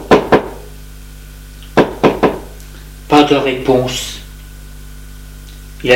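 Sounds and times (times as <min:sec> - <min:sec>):
knocking on a wooden door: 0:00.0 - 0:00.6, 0:01.8 - 0:02.5
speech: 0:03.3 - 0:04.2, 0:05.8 - 0:05.9.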